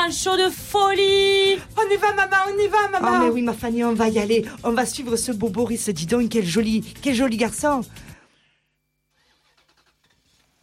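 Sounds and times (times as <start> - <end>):
speech: 0.0 - 8.1
Renault 4L car engine starting: 9.1 - 10.6.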